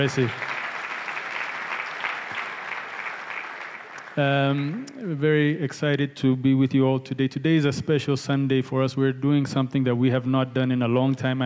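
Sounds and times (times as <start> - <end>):
speech: 0.0 - 0.5, 4.2 - 11.4
audience clapping: 0.0 - 4.9.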